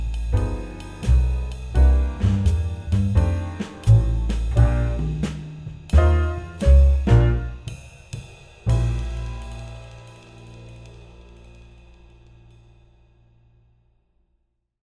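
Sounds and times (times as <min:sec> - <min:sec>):
muted swing guitar: 0:00.4 - 0:07.6.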